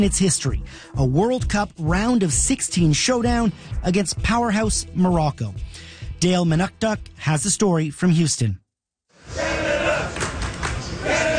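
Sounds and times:
speech: 0:00.0 - 0:08.6
soccer fans chanting in the streets of downtown Houston: 0:09.3 - 0:10.2, 0:11.0 - 0:11.3.

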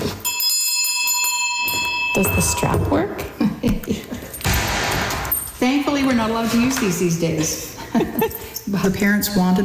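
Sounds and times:
old classroom bell ringing: 0:00.2 - 0:03.2
speech: 0:02.2 - 0:04.1, 0:05.6 - 0:09.6.

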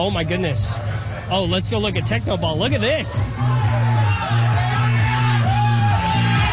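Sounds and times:
speech: 0:00.0 - 0:03.6
crowd shouting and whooping around a game: 0:03.0 - 0:06.5.

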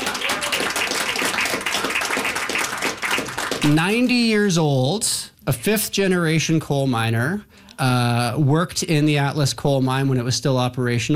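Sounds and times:
crowd applauding: 0:00.0 - 0:04.1
speech: 0:03.7 - 0:11.1.

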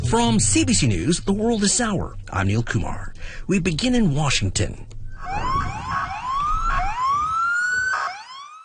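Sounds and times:
speech: 0:00.1 - 0:04.9
police sirens wailing: 0:05.1 - 0:08.6.

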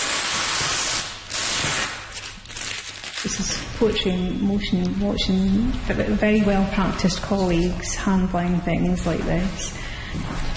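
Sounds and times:
paper tape being unwrapped from artwork: 0:00.0 - 0:03.8
speech: 0:03.2 - 0:10.5.

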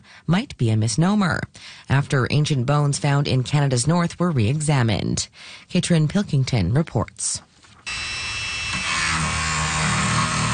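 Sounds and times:
speech: 0:00.2 - 0:08.1
power tool cutting into 30,000-year-old bone: 0:07.8 - 0:10.5.

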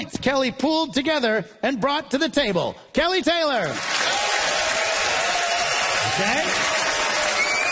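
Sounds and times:
speech: 0:00.0 - 0:04.2, 0:06.0 - 0:06.8
Charlottetown audience applause vote: 0:03.8 - 0:07.7.

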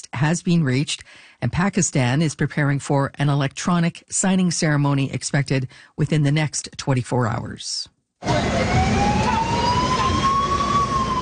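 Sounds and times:
speech: 0:00.0 - 0:09.5
UN escort vehicle siren wailing: 0:08.2 - 0:11.1.

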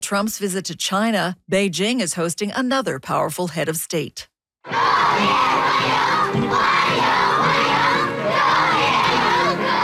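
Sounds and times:
speech: 0:00.1 - 0:07.7
schoolchildren cheering: 0:04.7 - 0:09.8.

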